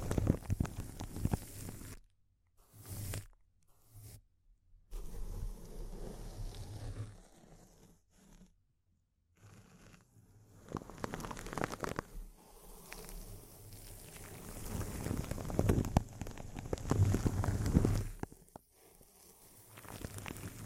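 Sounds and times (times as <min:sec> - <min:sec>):
crinkling: 0:00.0 - 0:03.4, 0:10.6 - 0:20.6.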